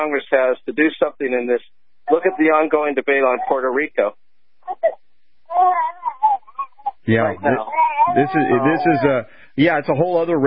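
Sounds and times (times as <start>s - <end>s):
speech: 0.0s - 5.0s, 7.1s - 10.4s
infant crying: 2.1s - 2.7s, 4.7s - 9.3s.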